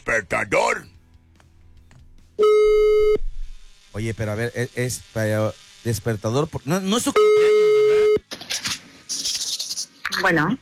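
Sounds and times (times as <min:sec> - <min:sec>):
speech: 0:00.0 - 0:00.8, 0:04.0 - 0:07.5, 0:10.2 - 0:10.6
telephone line tone after dialing: 0:02.4 - 0:03.2, 0:07.2 - 0:08.2.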